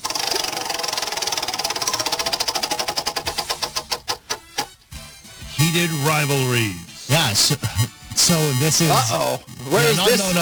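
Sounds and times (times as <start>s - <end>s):
spinning topic wheel clicking: 0.0s - 4.8s
speech: 5.7s - 10.4s.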